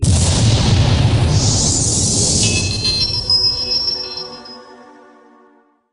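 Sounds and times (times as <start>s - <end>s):
time bomb explosion: 0.0s - 4.4s.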